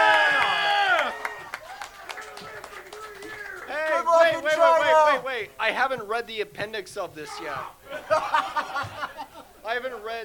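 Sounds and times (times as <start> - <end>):
scattered sharp claps: 0.0 - 4.8
live audience cheering with high whooping voices: 0.0 - 5.2
speech: 5.7 - 8.3, 9.7 - 10.2
laughter: 7.3 - 10.2.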